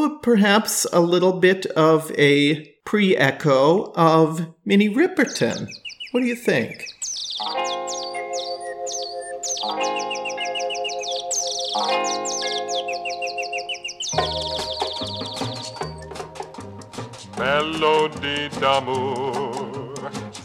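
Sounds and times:
speech: 0.0s - 8.0s, 17.4s - 19.5s
little bird tweets in a song: 5.1s - 17.3s.

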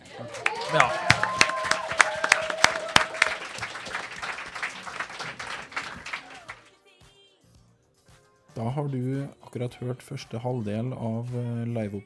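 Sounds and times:
audience applause: 0.0s - 6.7s
speech: 8.8s - 12.0s.

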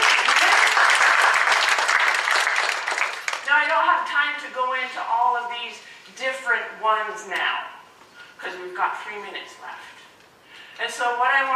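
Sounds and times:
crowd applause: 0.0s - 3.4s
speech: 3.9s - 7.7s, 8.4s - 10.0s, 10.8s - 11.5s.

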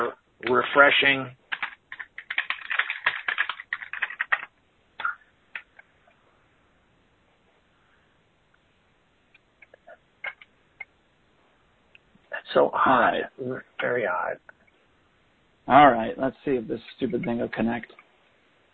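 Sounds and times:
speech: 0.5s - 1.4s, 12.5s - 14.6s, 15.7s - 18.0s
typing on a computer keyboard: 1.5s - 4.5s.

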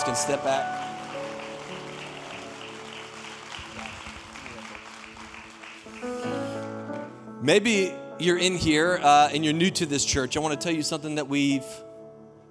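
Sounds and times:
audience applause: 0.0s - 7.1s
sustained musical chords: 0.0s - 8.4s
speech: 0.1s - 0.8s, 7.4s - 11.9s.

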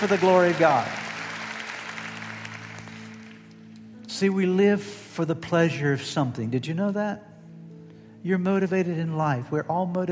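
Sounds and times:
speech: 0.0s - 1.0s, 4.2s - 7.3s, 8.2s - 10.0s
crowd clapping: 0.0s - 3.8s.

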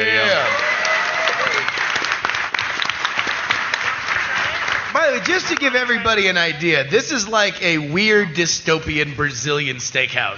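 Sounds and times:
crowd applause: 0.0s - 7.2s
murmur of voices: 4.3s - 9.8s
speech: 5.4s - 10.3s.

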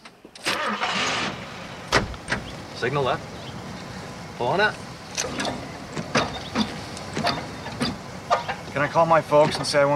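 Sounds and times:
car engine cranking, starting and revving: 0.4s - 8.3s
speech: 2.8s - 3.4s, 4.4s - 5.6s, 7.2s - 7.5s, 8.8s - 9.9s.

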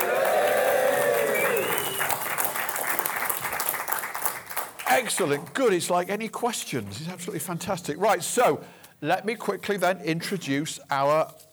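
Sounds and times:
live studio audience clapping at the Financial Wellbeing Conference 2019 in North Bristol: 0.0s - 5.8s
speech: 5.0s - 11.5s.

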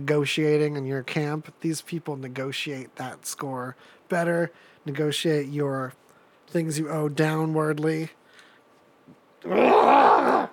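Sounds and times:
speech: 0.0s - 8.2s, 9.4s - 10.5s
guttural scream: 9.4s - 10.5s.

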